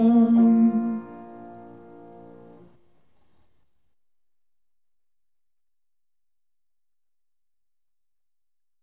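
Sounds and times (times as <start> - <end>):
hymn: 0.0 - 1.5.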